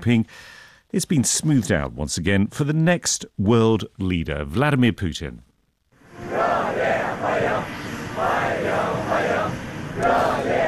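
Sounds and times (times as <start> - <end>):
speech: 0.0 - 5.5
steady crowd noise: 6.0 - 10.6
young people chanting to welcome Vladimir Putin in Beijing: 6.2 - 10.6.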